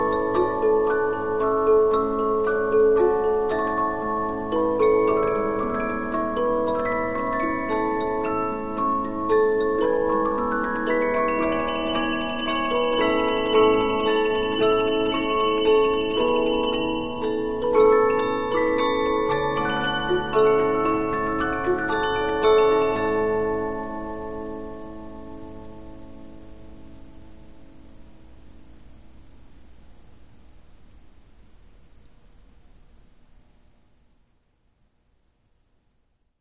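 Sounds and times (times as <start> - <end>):
Polyphon 15-inch disc music box playing: 0.0 - 26.0.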